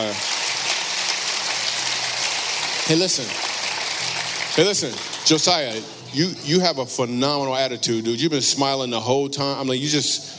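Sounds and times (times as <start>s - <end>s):
audience applause: 0.0s - 5.9s
speech: 2.9s - 3.5s, 4.6s - 10.3s.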